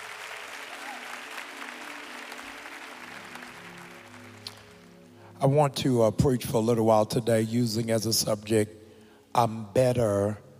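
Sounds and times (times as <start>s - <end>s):
audience applause: 0.0s - 4.9s
speech: 5.4s - 8.8s, 9.4s - 10.4s.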